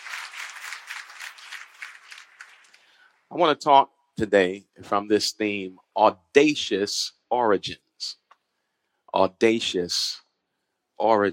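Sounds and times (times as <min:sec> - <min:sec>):
crowd clapping in praise: 0:00.0 - 0:03.0
speech: 0:03.3 - 0:08.2, 0:09.2 - 0:10.2, 0:11.0 - 0:11.3.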